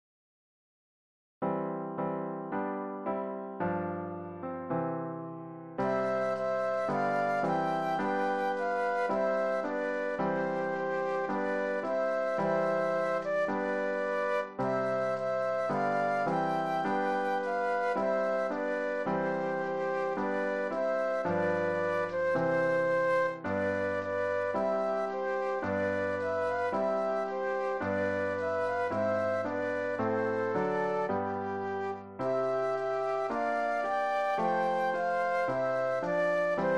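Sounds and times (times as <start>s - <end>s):
piano: 1.4s - 36.7s
flute duet: 5.1s - 36.7s.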